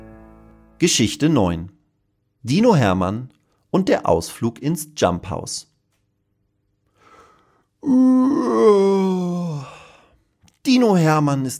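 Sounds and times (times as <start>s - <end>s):
speech: 0.8s - 1.8s, 2.4s - 5.7s, 7.8s - 9.2s, 10.7s - 11.5s
voice imitating howling wind: 7.8s - 9.8s.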